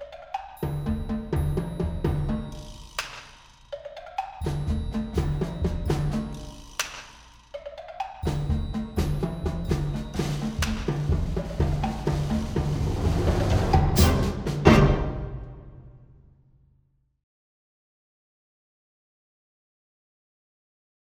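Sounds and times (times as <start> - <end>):
percussion: 0.0 - 16.8.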